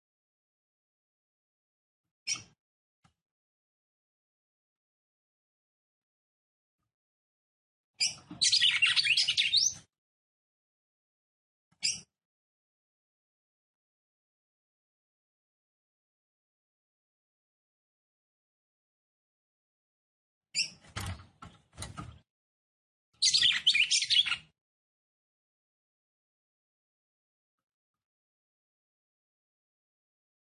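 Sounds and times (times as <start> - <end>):
Red-cowled cardinal singing: 8.0 - 9.8, 23.2 - 24.5.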